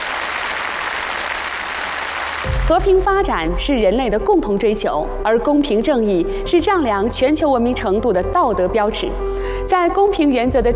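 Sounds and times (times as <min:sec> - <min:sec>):
audience applause at a lecture event: 0:00.0 - 0:02.7
speech: 0:02.7 - 0:10.7.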